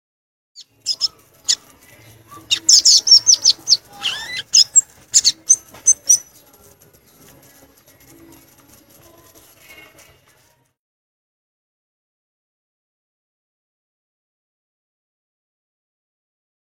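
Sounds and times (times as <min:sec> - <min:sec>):
violaceous euphonia song: 0:00.6 - 0:08.5.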